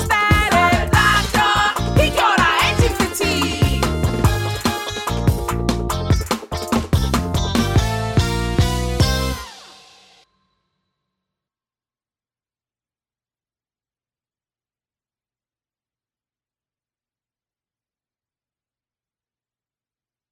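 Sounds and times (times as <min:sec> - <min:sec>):
advertising jingle: 0:00.0 - 0:10.2.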